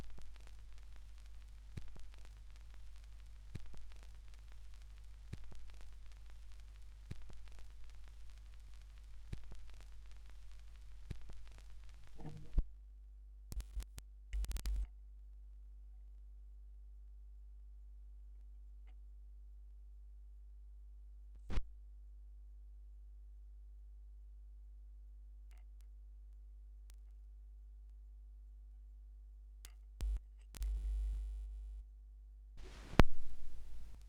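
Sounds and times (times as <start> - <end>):
vinyl record noise: 0.0 - 12.7, 13.5 - 14.9, 30.0 - 31.6, 32.6 - 34.0.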